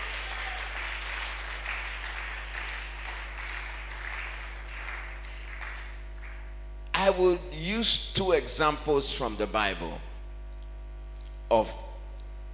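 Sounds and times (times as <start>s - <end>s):
church congregation clapping: 0.0s - 6.6s
speech: 7.1s - 10.1s, 11.5s - 11.8s.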